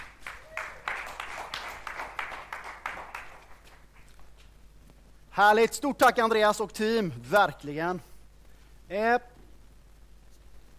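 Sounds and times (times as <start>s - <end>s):
audience applause: 0.0s - 4.1s
speech: 5.4s - 8.1s, 8.9s - 9.3s.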